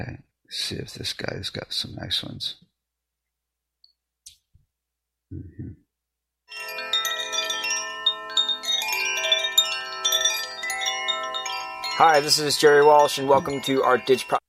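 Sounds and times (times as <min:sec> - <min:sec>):
speech: 0:00.0 - 0:02.6, 0:05.3 - 0:05.8, 0:12.0 - 0:14.4
Koshi chimes ringing softly: 0:06.5 - 0:14.4.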